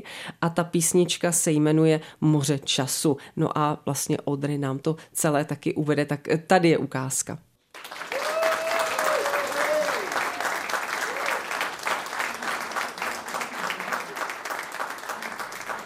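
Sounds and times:
speech: 0.0 - 8.1
audience applause at a concert: 7.7 - 15.8.

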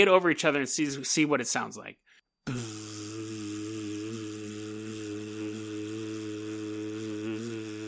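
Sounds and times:
speech: 0.0 - 2.8
voice imitating a buzz: 2.5 - 7.8.

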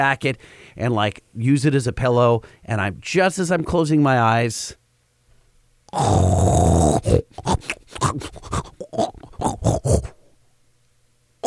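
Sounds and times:
speech: 0.0 - 4.8, 5.9 - 9.0
person imitating pig snoring grunt: 5.9 - 10.2.

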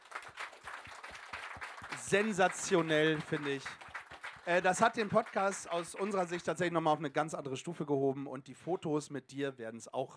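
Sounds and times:
audience applause: 0.0 - 6.6
speech: 2.0 - 3.8, 4.5 - 10.1.

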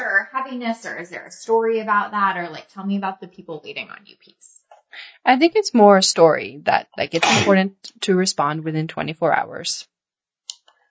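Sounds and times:
speech: 0.5 - 9.9
sneeze: 7.2 - 7.5.

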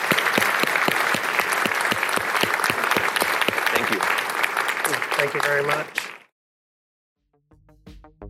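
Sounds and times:
audience applause: 0.0 - 6.3
speech: 5.3 - 6.0.

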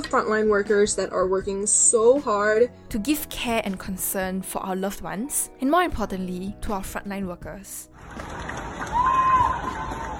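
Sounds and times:
speech: 0.1 - 8.4
crowd cheering: 8.1 - 10.1.

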